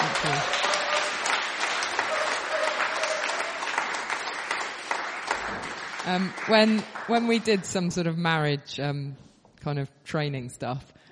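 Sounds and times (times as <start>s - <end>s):
audience clapping: 0.0s - 8.2s
speech: 6.1s - 11.0s.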